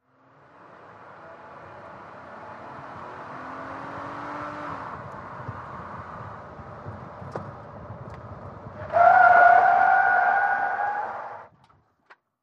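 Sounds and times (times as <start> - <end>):
SUV truck accelerating: 0.1 - 11.3
SUV truck tyres skidding: 2.4 - 11.5.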